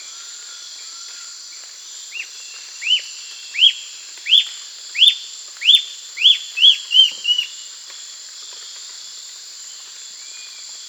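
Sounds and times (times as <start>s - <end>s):
bird whistling calls: 3.6s - 7.6s.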